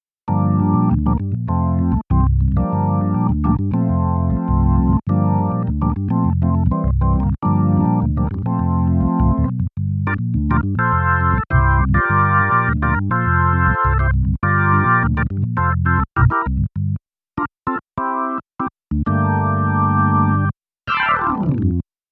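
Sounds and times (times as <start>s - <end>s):
Nord Stage EX B3 organ: 0.3s - 16.6s, 17.7s - 21.2s.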